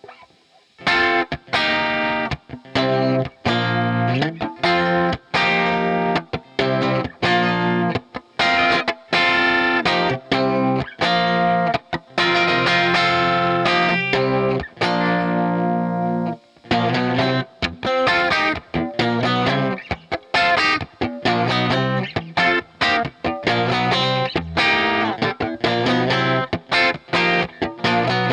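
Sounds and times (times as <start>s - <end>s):
Strat61 electric guitar: 0.0s - 28.3s.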